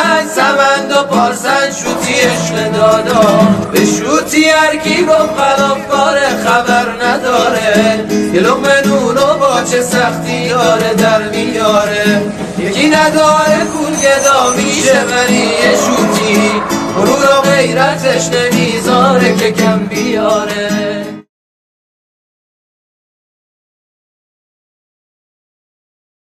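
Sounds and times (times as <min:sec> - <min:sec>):
guitar playing: 0:00.4 - 0:21.2.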